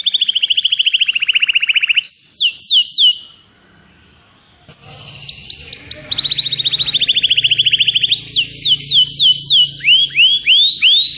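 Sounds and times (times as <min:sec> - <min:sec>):
Atlantic canary song: 0:00.0 - 0:11.1
faint low hum: 0:03.6 - 0:11.1.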